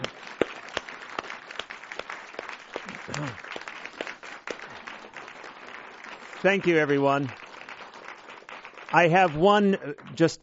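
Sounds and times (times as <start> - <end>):
audience applause: 0.0 - 10.2
speech: 3.2 - 3.4, 6.4 - 7.4, 8.9 - 10.4.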